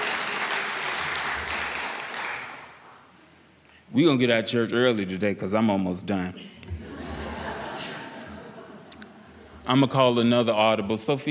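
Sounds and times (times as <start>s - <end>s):
audience clapping: 0.0s - 3.1s
speech: 3.9s - 6.5s, 9.7s - 11.3s
laughter: 6.6s - 9.9s.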